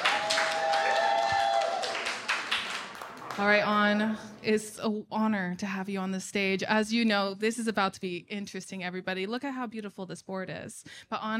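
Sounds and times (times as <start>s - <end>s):
audience applause: 0.0s - 3.7s
speech: 3.4s - 11.3s.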